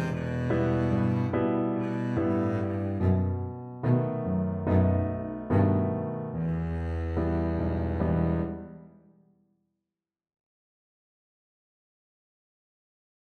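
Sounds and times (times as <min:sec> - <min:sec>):
double bass playing a folk song: 0:00.0 - 0:08.6.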